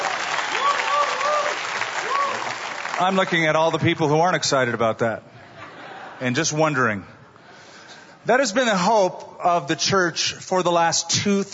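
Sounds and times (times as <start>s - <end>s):
audience clapping: 0.0s - 4.1s
speech: 3.0s - 5.3s, 6.2s - 7.1s, 8.2s - 11.5s.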